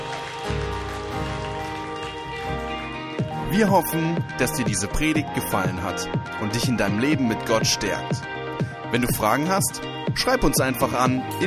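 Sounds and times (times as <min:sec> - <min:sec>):
audience applause: 0:00.0 - 0:03.2
speech: 0:03.5 - 0:11.4.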